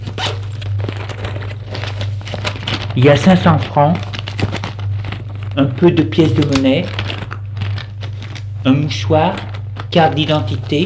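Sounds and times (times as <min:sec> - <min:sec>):
red handbag zipper opening: 0:00.0 - 0:01.6
low steady hum: 0:00.0 - 0:10.8
speech: 0:02.9 - 0:04.1, 0:05.6 - 0:07.0, 0:08.6 - 0:10.8.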